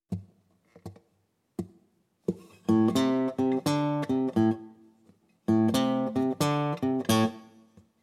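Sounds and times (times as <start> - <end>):
blues rock guitar in open tunings: 2.7 - 4.6, 5.5 - 7.4.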